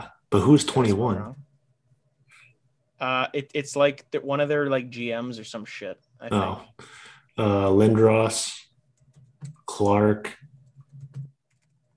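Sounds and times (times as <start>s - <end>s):
speech: 0.0s - 1.4s, 3.0s - 8.6s, 9.7s - 10.5s
faint keyboard typing: 8.9s - 11.9s.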